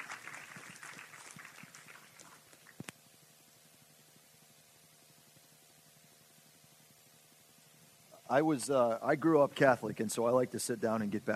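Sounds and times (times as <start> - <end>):
audience applause: 0.0 - 2.8
speech: 8.3 - 11.3.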